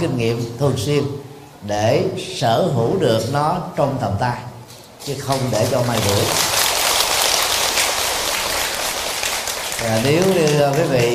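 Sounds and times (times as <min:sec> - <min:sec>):
speech: 0:00.0 - 0:06.6, 0:09.8 - 0:11.1
audience clapping: 0:05.3 - 0:11.1.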